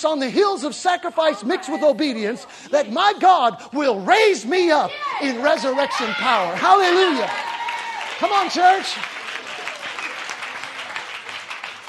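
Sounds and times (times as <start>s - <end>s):
speech: 0.0s - 7.5s, 8.2s - 9.2s
audience clapping: 5.4s - 11.8s.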